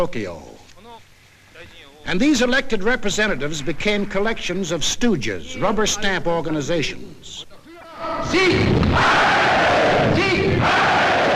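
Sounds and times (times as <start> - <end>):
speech: 0.0 - 0.5, 1.6 - 10.9
crowd applauding at rally: 2.8 - 5.0
crowd cheering and shouting at rally: 7.8 - 11.3.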